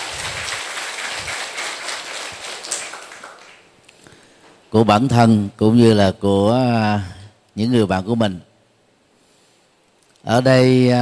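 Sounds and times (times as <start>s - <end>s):
big round of applause: 0.0s - 3.7s
speech: 4.7s - 8.5s, 10.2s - 10.9s.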